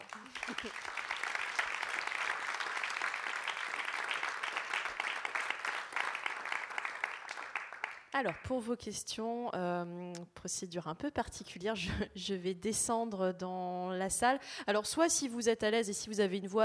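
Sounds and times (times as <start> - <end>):
audience applause: 0.0 - 8.1
speech: 0.5 - 1.0, 8.2 - 16.6.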